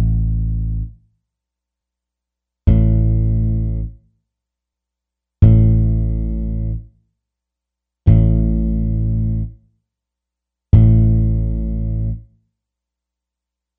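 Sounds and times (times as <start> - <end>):
bass: 0.0 - 1.3, 2.6 - 4.2, 5.4 - 7.1, 8.0 - 9.8, 10.7 - 12.5.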